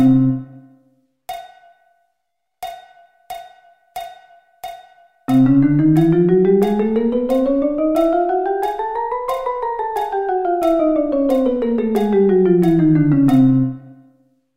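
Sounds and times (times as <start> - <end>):
chromatic scale: 0.0 - 0.7, 5.3 - 14.0.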